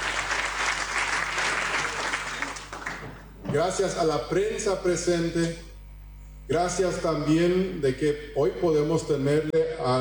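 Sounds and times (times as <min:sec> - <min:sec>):
audience clapping: 0:00.0 - 0:03.5
speech: 0:03.5 - 0:05.7, 0:06.5 - 0:09.9.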